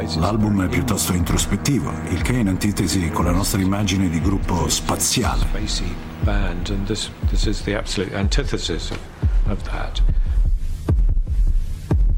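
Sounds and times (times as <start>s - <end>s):
speech: 0.1s - 10.3s
simulated heartbeat played softly on drums: 4.2s - 12.1s.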